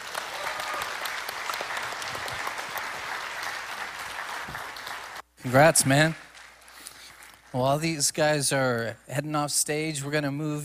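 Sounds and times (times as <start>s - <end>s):
audience applause in a church service: 0.0s - 7.5s
speech: 5.4s - 6.2s, 7.6s - 10.6s.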